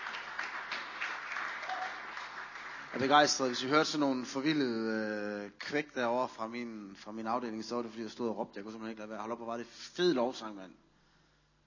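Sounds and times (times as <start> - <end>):
audience applause for worship band: 0.0 - 3.8
speech: 3.0 - 10.8.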